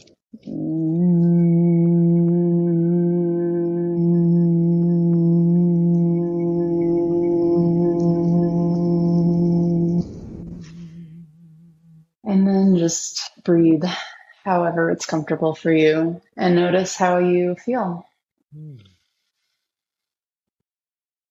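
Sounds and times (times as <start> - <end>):
group humming on exhale: 0.5 - 11.6
speech: 12.9 - 18.9.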